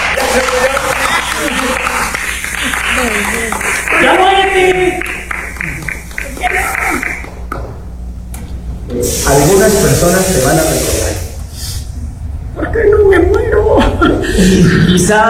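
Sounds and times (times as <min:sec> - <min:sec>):
people chuckling: 0:00.0 - 0:03.8, 0:05.5 - 0:06.2, 0:12.7 - 0:15.2
audience applause: 0:00.0 - 0:07.4
speech: 0:00.4 - 0:01.8, 0:09.0 - 0:11.0, 0:14.0 - 0:15.2.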